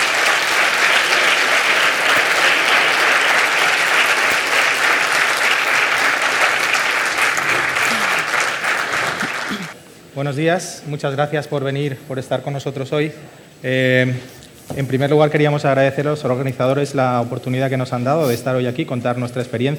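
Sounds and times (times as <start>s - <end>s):
audience applause: 0.0s - 9.8s
speech: 10.2s - 19.7s.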